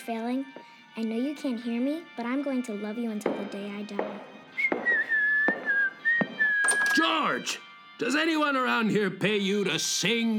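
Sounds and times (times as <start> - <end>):
speech: 0.0 - 4.4, 7.0 - 10.3
sharp knocks: 3.3 - 7.1
person whistling a tune: 4.5 - 7.1.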